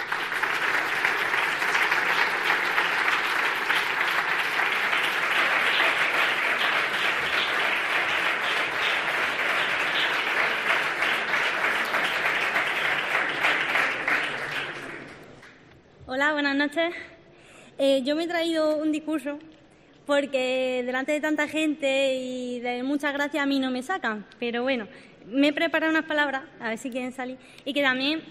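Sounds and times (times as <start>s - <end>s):
large audience applause: 0.0s - 15.5s
speech: 16.5s - 17.1s, 17.8s - 19.5s, 20.1s - 28.2s.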